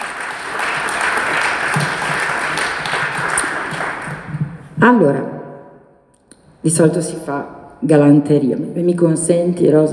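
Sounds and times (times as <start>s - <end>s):
applause: 0.0s - 4.6s
speech: 4.8s - 5.3s, 6.6s - 9.9s.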